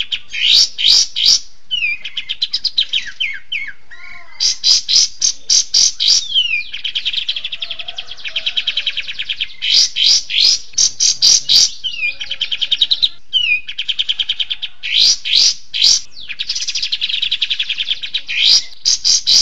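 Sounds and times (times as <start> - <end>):
songbird song in harsh buzzy bursts and rattling trill: 0.0 - 19.3.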